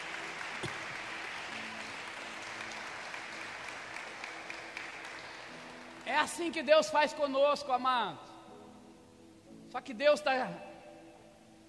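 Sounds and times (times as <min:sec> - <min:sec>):
applause: 0:00.0 - 0:06.6
speech: 0:06.1 - 0:08.3, 0:09.7 - 0:10.7.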